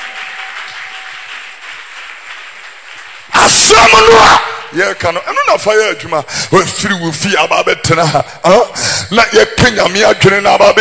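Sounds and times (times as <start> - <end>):
people clapping: 0.0 - 4.4
speech: 3.6 - 10.8.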